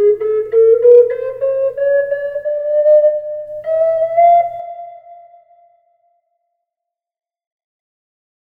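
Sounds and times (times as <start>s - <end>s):
low D flute with reverb: 0.0s - 6.4s.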